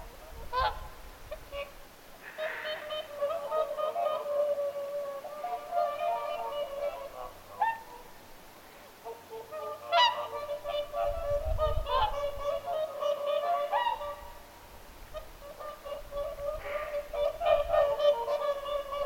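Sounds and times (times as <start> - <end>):
whooper swans trumpeting: 0.0 - 19.0.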